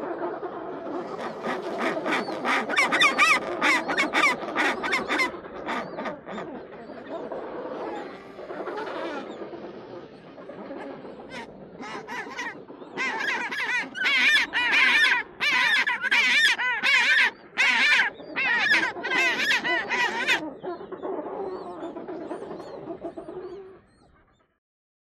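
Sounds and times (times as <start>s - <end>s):
flock of penguins calling: 0.0s - 24.1s.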